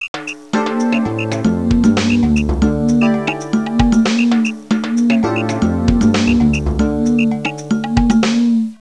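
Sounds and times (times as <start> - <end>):
contemporary ringtone: 0.2 - 8.3.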